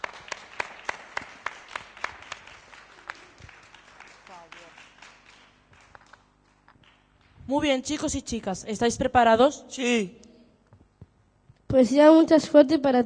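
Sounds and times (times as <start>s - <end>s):
audience applauding: 0.0s - 7.1s
speech: 7.5s - 10.2s, 11.7s - 13.0s.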